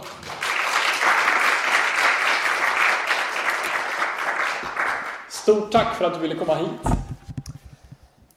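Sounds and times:
audience applause: 0.0 - 5.3
speech: 5.5 - 7.0.

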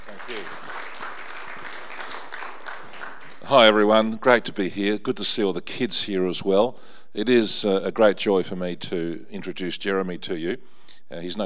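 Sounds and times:
church congregation applause welcoming a pastor: 0.0 - 3.9
speech: 3.5 - 11.4.

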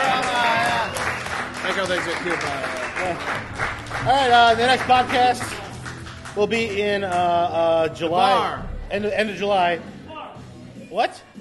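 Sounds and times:
audience round of applause: 0.0 - 6.8
speech: 1.8 - 5.6, 6.4 - 10.0, 10.9 - 11.3.

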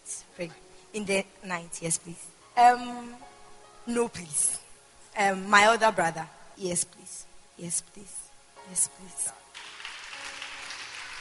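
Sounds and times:
speech: 0.4 - 3.3, 3.9 - 4.6, 5.2 - 9.4
crowd clapping: 9.5 - 11.2.

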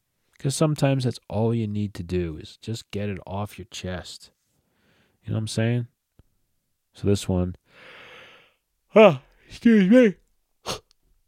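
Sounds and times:
speech: 0.4 - 4.4, 5.2 - 5.9, 7.0 - 8.0, 8.9 - 10.8
person yawning: 10.6 - 10.9.

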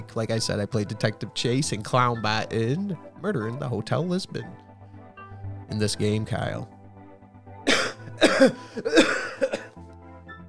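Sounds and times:
speech: 0.0 - 4.6, 5.7 - 6.7, 8.2 - 9.3
person coughing with something caught in the throat: 7.7 - 9.8.

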